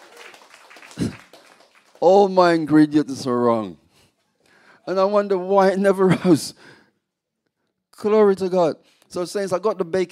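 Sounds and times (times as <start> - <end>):
audience applause: 0.0 - 2.6
speech: 2.0 - 3.8, 4.8 - 6.8, 8.0 - 10.1.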